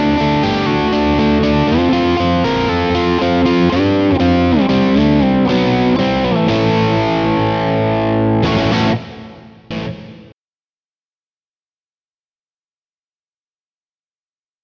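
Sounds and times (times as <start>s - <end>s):
electric guitar on bridge pickup: 0.0s - 10.4s.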